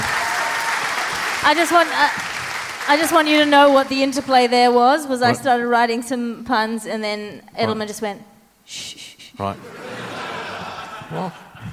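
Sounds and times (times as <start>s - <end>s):
audience clapping: 0.0s - 4.8s
speech: 1.4s - 2.3s, 2.9s - 10.0s, 11.1s - 11.7s
laughter: 9.4s - 11.7s.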